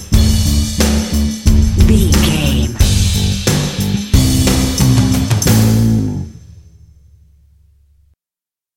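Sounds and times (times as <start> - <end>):
drums: 0.0 - 7.3
bass: 0.0 - 8.1.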